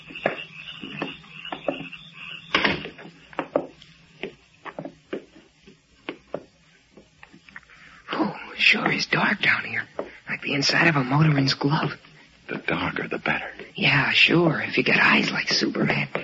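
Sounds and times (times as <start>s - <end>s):
door closing: 2.5s - 3.1s
speech: 8.7s - 12.0s, 12.6s - 16.2s.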